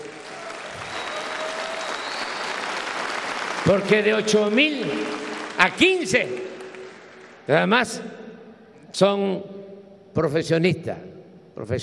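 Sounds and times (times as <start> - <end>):
audience applause: 0.0 - 7.5
speech: 3.6 - 6.5, 7.5 - 8.2, 8.9 - 9.6, 10.2 - 11.8.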